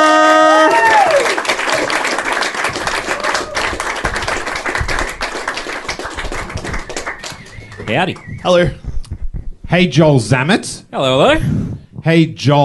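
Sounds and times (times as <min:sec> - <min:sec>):
audience applause: 0:00.0 - 0:08.3
speech: 0:07.9 - 0:08.8, 0:09.7 - 0:12.6.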